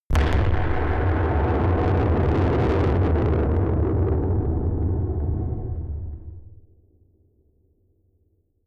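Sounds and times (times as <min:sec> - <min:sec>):
distorted explosions: 0:00.1 - 0:06.6.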